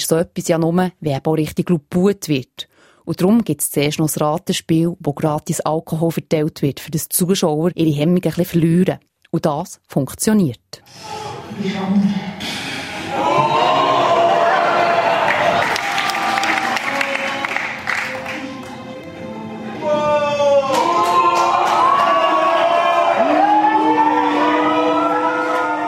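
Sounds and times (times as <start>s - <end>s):
speech: 0.1s - 12.6s
audience cheering and hooting: 12.8s - 18.5s, 19.8s - 25.8s
audience clapping: 13.9s - 19.2s, 20.6s - 25.8s.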